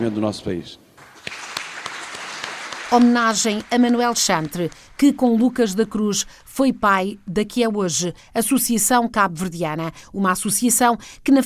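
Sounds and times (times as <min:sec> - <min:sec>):
speech: 0:00.0 - 0:00.9, 0:02.9 - 0:11.4
crowd applauding: 0:01.0 - 0:06.1.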